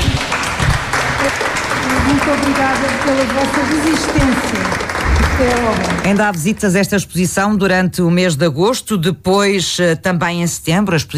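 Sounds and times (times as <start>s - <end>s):
audience applause at end of visit: 0.0s - 6.7s
speech: 2.3s - 11.1s.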